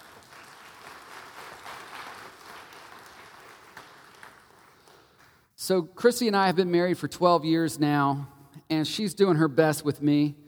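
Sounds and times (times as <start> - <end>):
crowd clapping: 0.0 - 5.5
speech: 5.7 - 10.4.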